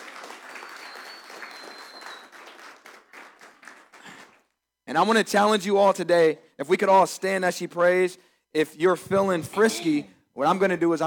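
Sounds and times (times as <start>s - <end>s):
crowd applauding: 0.0s - 4.5s
speech: 4.9s - 11.0s.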